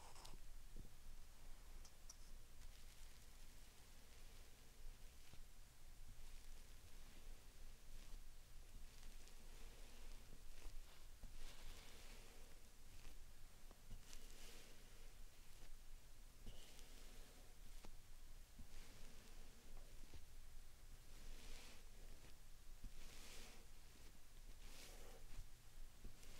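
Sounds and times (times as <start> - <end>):
steady low hiss: 0.0 - 26.3
slime sand being squished and worked: 6.1 - 15.8, 16.4 - 18.0, 18.6 - 20.3, 21.0 - 26.3.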